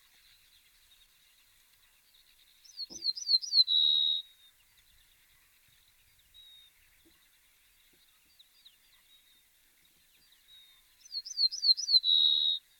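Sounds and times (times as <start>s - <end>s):
ortolan bunting singing: 0.0s - 12.7s.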